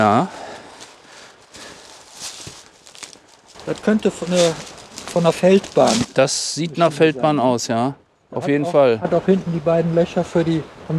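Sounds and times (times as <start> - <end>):
speech: 0.0 - 0.4, 3.7 - 10.9
footsteps crunching walking downhill: 0.0 - 7.4
outdoor hiss: 0.0 - 10.9.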